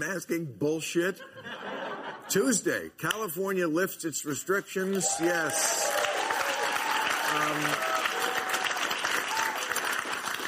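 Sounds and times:
speech: 0:00.0 - 0:05.9, 0:07.3 - 0:07.9
laughter: 0:01.2 - 0:02.5
audience applause: 0:04.9 - 0:10.4.

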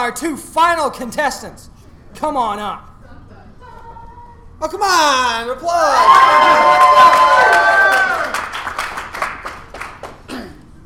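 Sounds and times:
speech: 0:00.0 - 0:02.9, 0:04.6 - 0:07.7
audience applause and cheering: 0:05.9 - 0:10.3.

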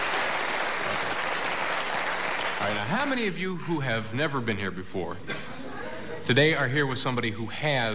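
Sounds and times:
studio audience applause: 0:00.0 - 0:03.2
speech: 0:02.6 - 0:05.5, 0:06.2 - 0:07.9.

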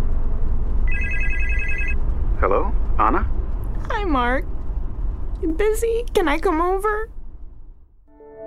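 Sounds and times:
low rumbling hum: 0:00.0 - 0:08.1
phone call electronic ringing tone: 0:00.9 - 0:02.0
speech: 0:02.4 - 0:03.4, 0:04.0 - 0:04.5, 0:05.4 - 0:07.2.

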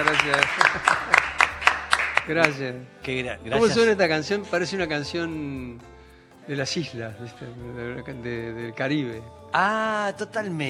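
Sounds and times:
speech: 0:00.0 - 0:01.3, 0:02.3 - 0:10.6
laughter: 0:00.0 - 0:02.0
rhythmic audience clapping: 0:00.0 - 0:02.8.

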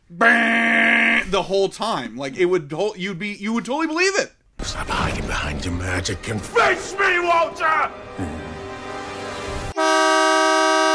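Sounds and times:
speech: 0:00.1 - 0:08.4
loud truck horn honking: 0:09.8 - 0:10.9.

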